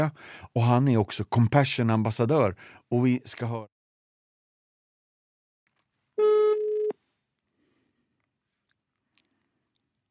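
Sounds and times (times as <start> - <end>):
speech: 0.0 - 3.7
telephone tone as a call is placed: 6.2 - 7.0.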